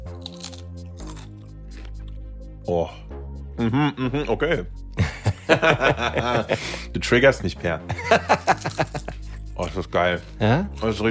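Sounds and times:
biting into ridged potato chips: 0.0s - 2.1s, 8.4s - 10.0s
speech: 2.7s - 4.8s, 5.5s - 9.0s, 9.7s - 11.1s
laughter: 5.0s - 6.9s, 7.9s - 9.3s.

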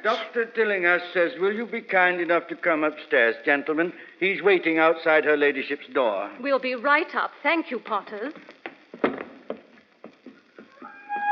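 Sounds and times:
speech: 0.0s - 9.2s
dog high sustained whine: 10.8s - 11.3s.

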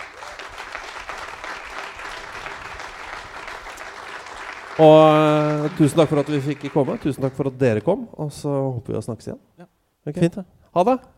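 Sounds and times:
audience applause for guests at a Norwegian talk session: 0.0s - 7.8s
speech: 4.8s - 11.1s.

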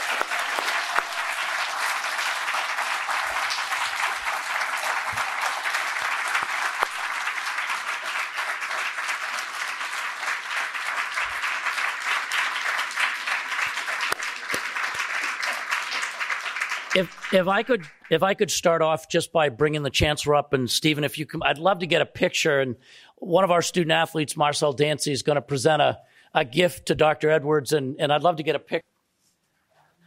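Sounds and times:
audience applause: 0.0s - 18.3s
speech: 17.0s - 28.9s.

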